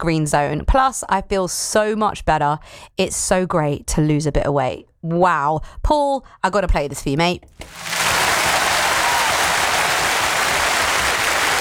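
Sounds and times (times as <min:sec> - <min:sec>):
speech: 0:00.0 - 0:08.0
crowd applause: 0:07.6 - 0:11.5.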